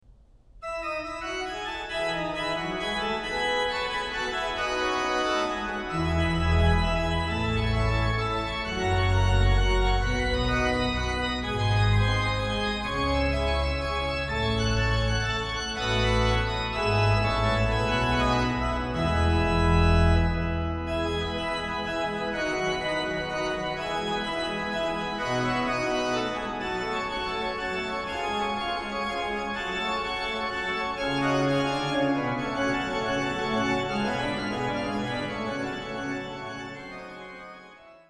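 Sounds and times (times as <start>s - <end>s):
prelude in F: 0.6s - 38.0s.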